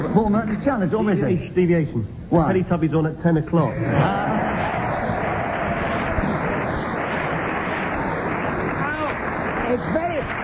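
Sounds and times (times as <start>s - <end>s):
speech: 0.1s - 4.5s, 9.7s - 10.4s
audience applause: 3.8s - 10.4s.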